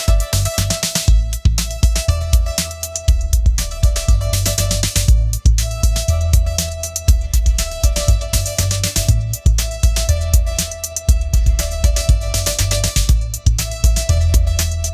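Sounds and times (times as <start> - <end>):
pop anthem: 0.0 - 14.9.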